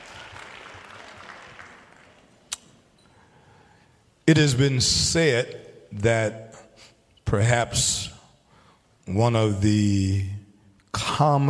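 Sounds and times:
crowd applause: 0:00.0 - 0:02.4
speech: 0:04.3 - 0:06.6, 0:07.3 - 0:08.2, 0:09.1 - 0:10.4, 0:11.0 - 0:11.4.

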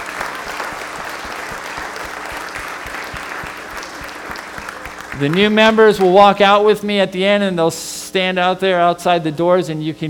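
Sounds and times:
audience applauding new church members: 0:00.0 - 0:06.2
speech: 0:05.2 - 0:10.0.

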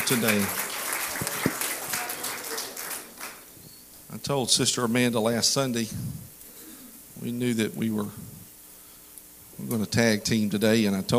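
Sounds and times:
audience clapping hands: 0:00.0 - 0:03.5
speech: 0:00.1 - 0:00.6, 0:04.3 - 0:06.3, 0:07.2 - 0:08.3, 0:09.6 - 0:11.1.

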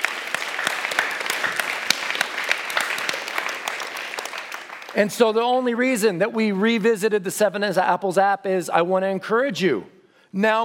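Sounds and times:
audience applause: 0:00.0 - 0:05.3
speech: 0:05.0 - 0:10.6.

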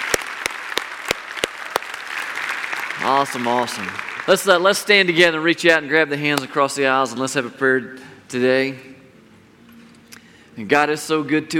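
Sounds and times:
crisp claps: 0:00.0 - 0:04.4
church congregation clapping for the choir: 0:00.0 - 0:05.2
speech: 0:03.0 - 0:08.9, 0:10.6 - 0:11.5.

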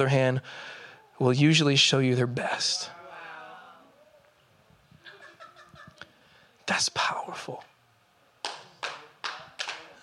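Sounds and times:
speech: 0:00.0 - 0:03.0, 0:06.7 - 0:07.7
laughter: 0:05.0 - 0:06.2
slow hand claps: 0:08.4 - 0:10.0.

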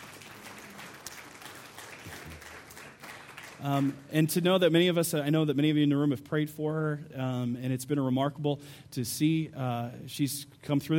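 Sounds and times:
audience applause: 0:00.0 - 0:04.0
speech: 0:03.6 - 0:10.9.

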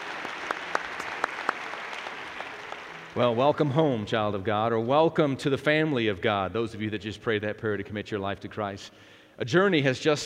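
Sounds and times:
church congregation applauding in praise: 0:00.0 - 0:04.1
speech: 0:03.2 - 0:10.2.

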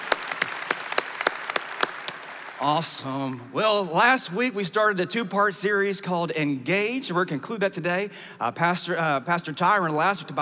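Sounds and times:
applause from a church congregation: 0:00.0 - 0:03.6
speech: 0:02.6 - 0:10.3.

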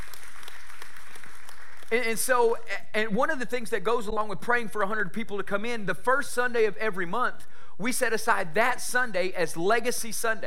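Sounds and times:
audience clapping hands in praise: 0:00.0 - 0:02.3
speech: 0:01.9 - 0:10.4.

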